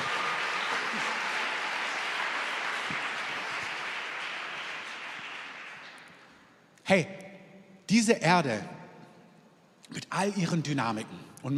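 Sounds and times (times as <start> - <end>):
audience applause: 0.0 - 6.4
speech: 6.9 - 7.2, 7.9 - 8.8, 9.9 - 11.5.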